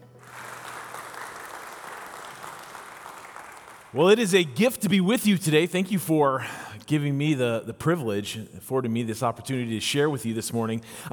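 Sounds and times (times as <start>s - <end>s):
audience applause at an Olivet Nazarene University theology school gathering: 0.0s - 4.1s
speech: 3.9s - 11.1s.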